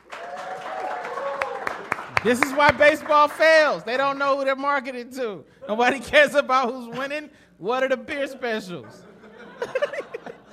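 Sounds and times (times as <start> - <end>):
audience applause: 0.0 - 3.5
speech: 2.2 - 9.8
laughter: 8.8 - 10.5.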